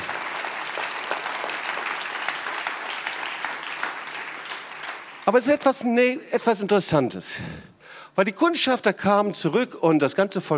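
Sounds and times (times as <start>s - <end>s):
audience applause: 0.0s - 5.7s
speech: 5.3s - 10.5s.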